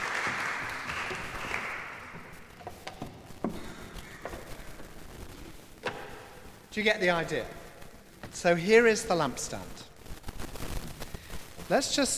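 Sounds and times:
audience applause: 0.0 - 2.4
speech: 6.8 - 7.6, 8.4 - 9.9, 11.7 - 12.1.

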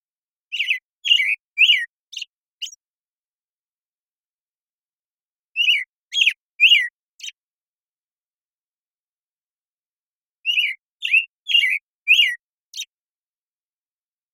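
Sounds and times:
American Robin singing slurred whistled phrases: 0.5 - 2.8, 5.5 - 7.4, 10.4 - 13.0.

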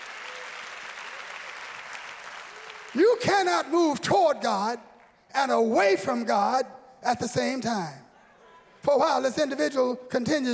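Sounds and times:
audience clapping hands: 0.0 - 3.8, 4.9 - 5.3
speech: 2.9 - 8.0, 8.8 - 10.5.

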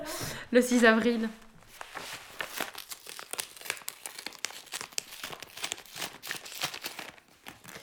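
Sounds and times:
speech: 0.0 - 1.4
thick paper crackling and rustling as a bulky case file is opened: 1.7 - 7.8.

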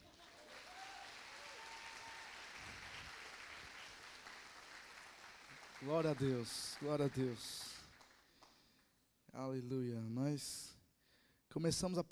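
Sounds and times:
audience applauding: 0.0 - 8.7
speech: 5.8 - 7.7, 9.3 - 10.8, 11.5 - 12.1.

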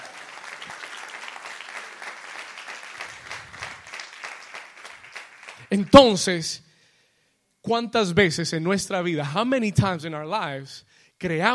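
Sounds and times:
audience applause: 0.0 - 6.0
speech: 5.7 - 6.7, 7.7 - 11.5.

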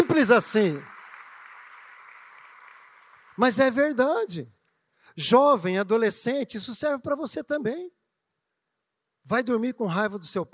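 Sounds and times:
audience applauding: 0.0 - 4.3
speech: 0.1 - 0.9, 3.4 - 4.6, 5.2 - 8.0, 9.2 - 10.5.

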